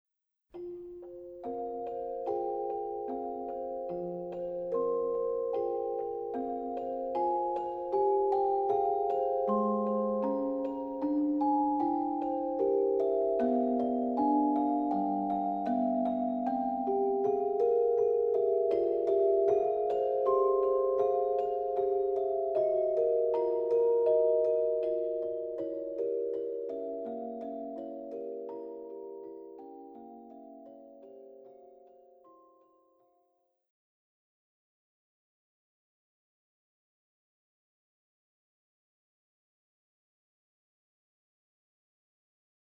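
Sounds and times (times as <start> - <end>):
celesta piece: 0.6 - 32.7.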